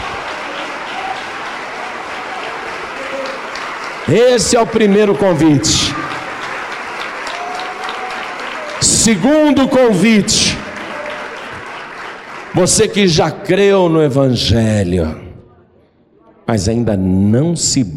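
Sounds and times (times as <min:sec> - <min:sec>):
audience applauding: 0:00.0 - 0:13.5
speech: 0:04.1 - 0:06.0, 0:09.0 - 0:10.6, 0:12.6 - 0:15.2, 0:16.5 - 0:17.9.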